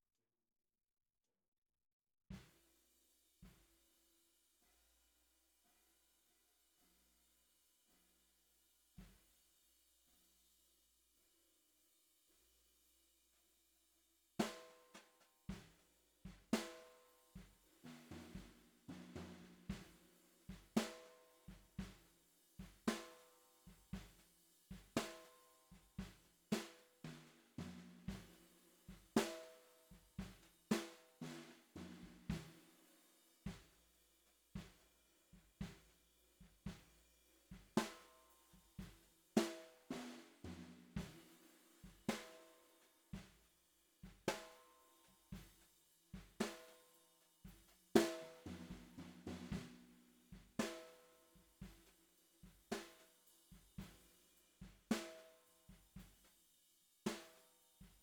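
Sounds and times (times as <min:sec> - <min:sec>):
bottom snare drum: 0:14.4 - 0:33.9, 0:34.5 - 0:56.4, 0:57.1 - 0:58.0.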